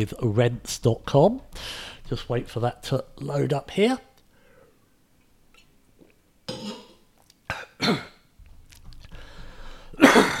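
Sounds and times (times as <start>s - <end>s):
speech: 0.0s - 4.1s, 7.9s - 8.1s
person coughing after water went down wrong way: 6.5s - 8.2s, 10.0s - 10.3s.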